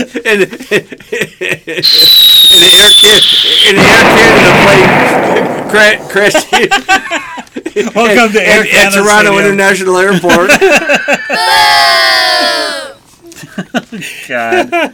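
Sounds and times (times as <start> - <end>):
laughter: 0.0 - 1.9, 6.1 - 8.1, 10.1 - 14.9
speech: 0.1 - 12.8, 13.6 - 14.9
plane crashing sound effect: 1.8 - 7.0.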